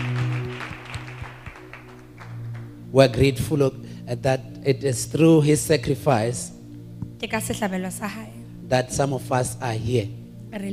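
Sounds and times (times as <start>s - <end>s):
round of applause: 0.0s - 2.7s
speech: 2.9s - 6.6s, 7.2s - 10.7s.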